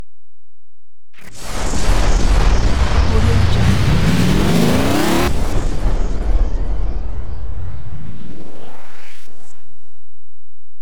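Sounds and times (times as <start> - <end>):
time exit warping sound effect: 1.2 - 9.9.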